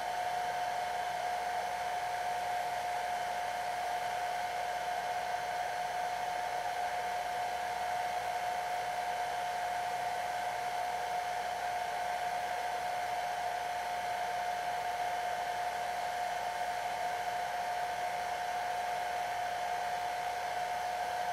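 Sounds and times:
blow dryer blowing: 0.0 - 21.3.

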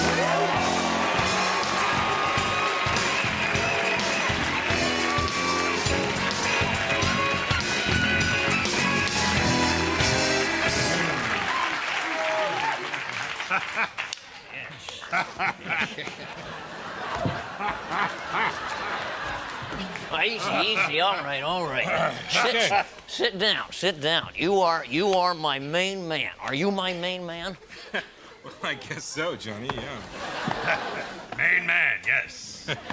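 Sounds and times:
studio audience cheering and applause: 0.0 - 15.2, 16.6 - 22.7
laughter: 13.0 - 23.0, 27.5 - 32.9
speech: 20.7 - 32.9.

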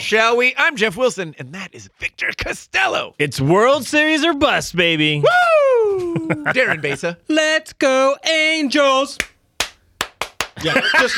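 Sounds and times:
speech: 0.0 - 5.6, 6.3 - 9.3, 10.6 - 11.1
laughter: 5.9 - 7.2, 10.6 - 11.1
single hand clap: 9.2 - 10.6.

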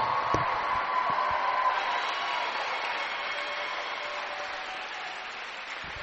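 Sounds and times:
gym crowd applauding seniors: 0.0 - 6.0.

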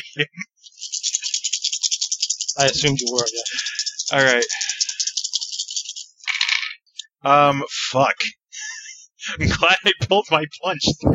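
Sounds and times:
laughter: 0.0 - 0.5, 2.6 - 4.9, 8.2 - 11.1
speech: 0.2 - 1.0, 2.6 - 4.8, 7.2 - 8.4, 9.3 - 11.1
dice rattling during a tabletop roleplaying game session: 0.8 - 6.8.

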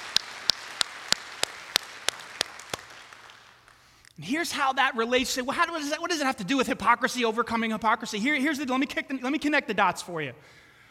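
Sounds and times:
audience clapping: 0.0 - 4.0
speech: 4.2 - 10.6.

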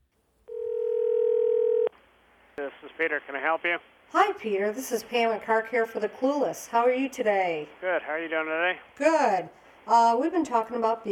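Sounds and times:
telephone dial tone: 0.5 - 1.9
speech: 3.0 - 11.1.

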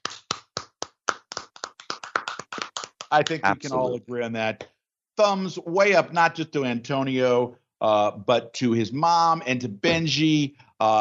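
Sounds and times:
round of applause: 0.0 - 3.8
speech: 3.1 - 11.0.

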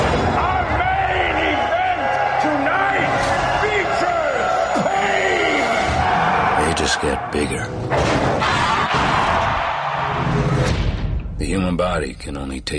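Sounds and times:
crowd roaring at robot fight: 0.0 - 10.8
speech: 7.2 - 8.2, 11.4 - 12.7.

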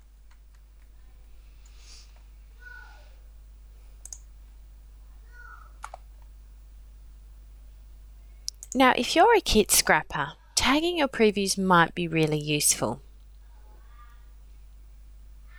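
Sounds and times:
computer mouse clicks during a software tutorial: 4.0 - 4.3, 5.4 - 6.3, 8.5 - 8.8
speech: 8.7 - 13.0.

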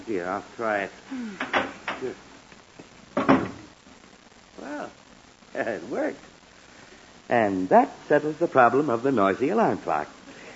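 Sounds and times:
speech: 0.1 - 2.3, 4.7 - 6.3, 7.3 - 10.2
clothes closet door being closed: 3.2 - 3.7.

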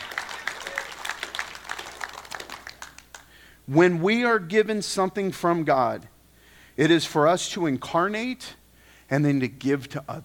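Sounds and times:
audience clapping: 0.0 - 3.4
speech: 3.7 - 6.1, 6.8 - 10.2.

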